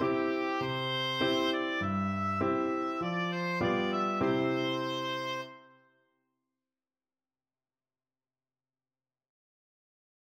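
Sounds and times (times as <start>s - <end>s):
oboe: 0.0s - 5.8s.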